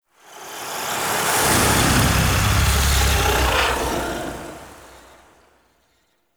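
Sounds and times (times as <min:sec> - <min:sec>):
transition stinger: 0:01.4 - 0:05.3.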